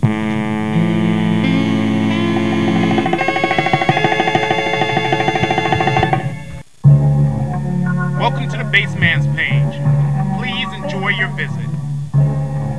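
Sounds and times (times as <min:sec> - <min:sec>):
bass: 0:00.0 - 0:12.7.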